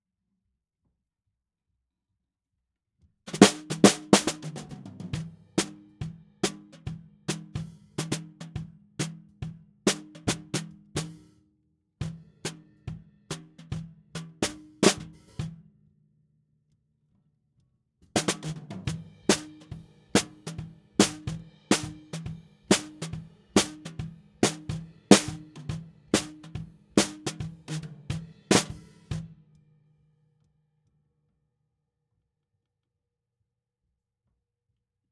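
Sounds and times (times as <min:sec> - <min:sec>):
snare drum: 0:03.3 - 0:11.2, 0:13.3 - 0:15.5, 0:18.2 - 0:29.3.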